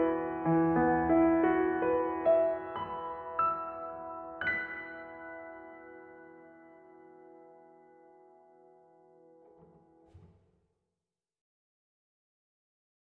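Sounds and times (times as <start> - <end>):
piano playing: 0.0 - 10.2.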